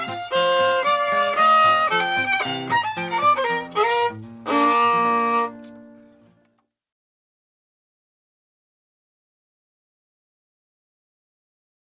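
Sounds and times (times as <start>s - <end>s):
hornpipe tune: 0.0s - 6.0s.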